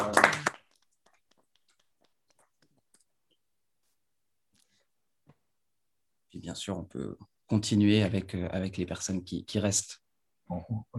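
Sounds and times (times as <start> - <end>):
few hands clapping: 0.0 - 3.4
speech: 6.5 - 10.9.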